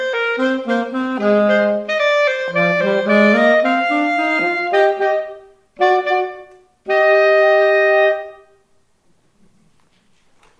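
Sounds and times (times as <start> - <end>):
live duet: 0.0 - 8.4.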